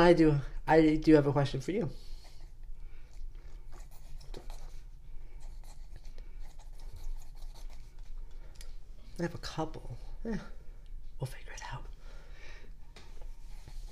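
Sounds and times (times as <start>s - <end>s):
speech: 0.0s - 2.0s, 9.2s - 10.6s, 11.2s - 11.9s
pen scratching across paper while writing: 3.8s - 4.7s, 5.4s - 8.0s.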